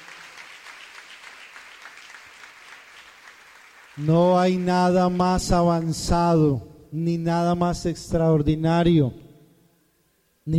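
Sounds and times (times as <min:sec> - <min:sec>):
audience applause: 0:00.0 - 0:05.9
speech: 0:04.0 - 0:09.2.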